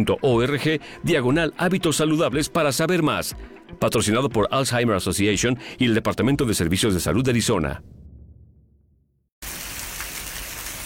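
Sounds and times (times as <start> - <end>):
speech: 0.0 - 8.0
rain falling: 9.4 - 10.8.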